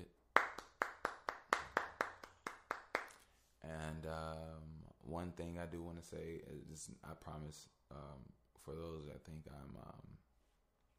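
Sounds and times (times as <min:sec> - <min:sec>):
hand clapping: 0:00.4 - 0:03.2
speech: 0:03.9 - 0:10.3.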